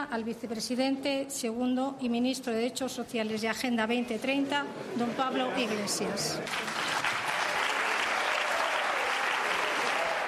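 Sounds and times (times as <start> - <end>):
speech: 0.0 - 6.9
crowd applauding: 6.4 - 10.2.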